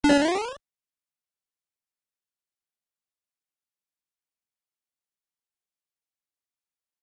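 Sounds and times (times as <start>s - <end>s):
super jump sound effect: 0.0s - 0.6s.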